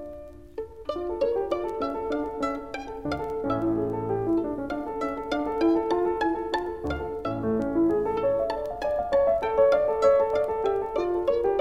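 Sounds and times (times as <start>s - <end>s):
violin sonata: 0.5s - 11.5s.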